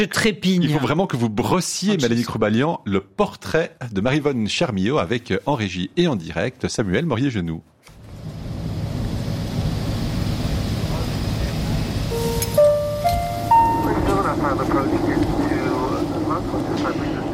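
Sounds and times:
speech: 0:00.0 - 0:08.0
airplane cabin noise: 0:08.0 - 0:17.3
crackling loudspeaker announcement in an airplane: 0:12.1 - 0:17.3.

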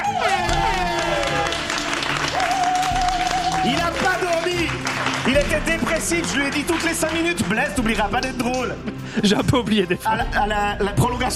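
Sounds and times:
audience applause: 0:00.0 - 0:08.1
speech: 0:05.4 - 0:11.3.

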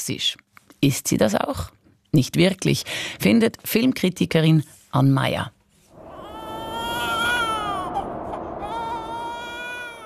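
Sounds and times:
speech: 0:00.0 - 0:05.6
newborn baby crying: 0:06.0 - 0:10.0.

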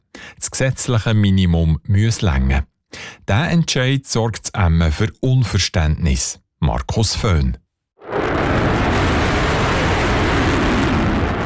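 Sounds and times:
speech: 0:00.4 - 0:07.6
F-35 fighter jet taking off: 0:08.0 - 0:11.4.

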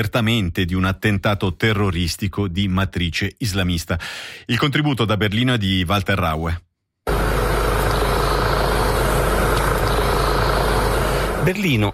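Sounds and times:
speech: 0:00.0 - 0:06.7, 0:11.4 - 0:11.9
helicopters flying over the city centre and the Tiergarten park: 0:07.1 - 0:11.5.

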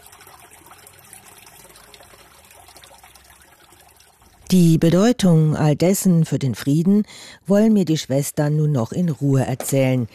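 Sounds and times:
water trickling in a fountain: 0:00.0 - 0:05.1
speech: 0:04.5 - 0:10.1.

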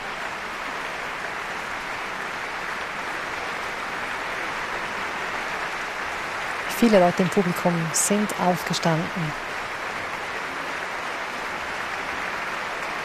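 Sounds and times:
concert audience applause: 0:00.0 - 0:13.0
speech: 0:06.8 - 0:09.5.

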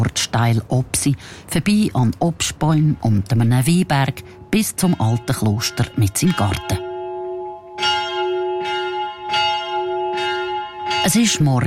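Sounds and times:
speech: 0:00.2 - 0:06.9, 0:11.1 - 0:11.6
monastery bells rung by hand with rope: 0:03.6 - 0:11.6.

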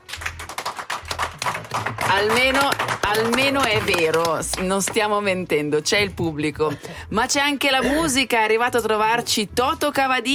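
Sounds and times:
audience applause: 0:00.0 - 0:04.6
speech: 0:01.7 - 0:10.3.

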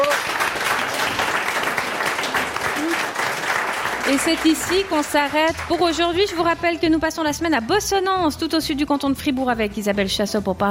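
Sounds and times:
audience applause: 0:00.0 - 0:05.9
speech: 0:04.1 - 0:10.7.

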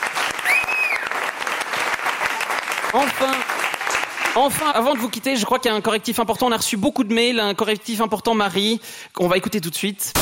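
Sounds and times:
audience applause: 0:00.0 - 0:05.2
speech: 0:02.9 - 0:03.5, 0:04.4 - 0:10.2.

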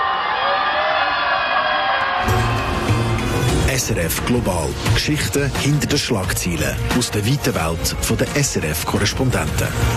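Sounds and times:
crowd of students screaming and whooping in the evening: 0:00.0 - 0:03.7
speech: 0:03.8 - 0:09.9.

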